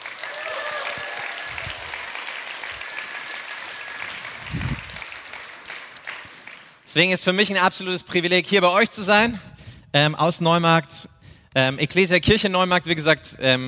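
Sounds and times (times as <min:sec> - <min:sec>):
audience applause: 0:00.0 - 0:06.8
speech: 0:06.9 - 0:13.6.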